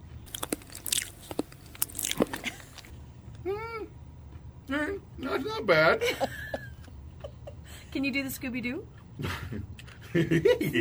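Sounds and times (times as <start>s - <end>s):
person eating dog biscuits: 0.0s - 3.4s
speech: 4.7s - 6.4s, 7.9s - 10.8s.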